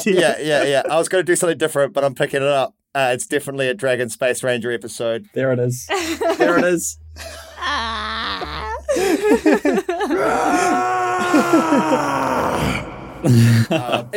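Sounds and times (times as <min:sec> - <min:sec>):
laughter: 0:00.0 - 0:01.1, 0:05.9 - 0:12.2, 0:13.2 - 0:14.1
speech: 0:00.0 - 0:14.1
person screaming: 0:07.4 - 0:08.9, 0:10.0 - 0:14.0.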